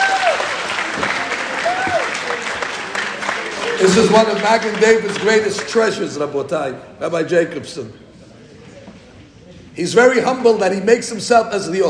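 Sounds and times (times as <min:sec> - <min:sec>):
faint whoops or whistle-like cries: 0:00.0 - 0:04.7
audience applause: 0:00.0 - 0:05.8
speech: 0:03.8 - 0:08.1, 0:09.8 - 0:11.8.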